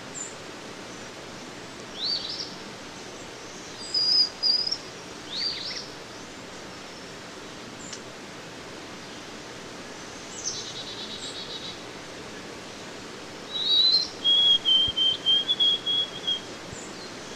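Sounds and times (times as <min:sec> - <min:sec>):
White-throated sparrow song of pure whistles: 0:02.0 - 0:02.6, 0:03.7 - 0:05.9, 0:13.5 - 0:17.3.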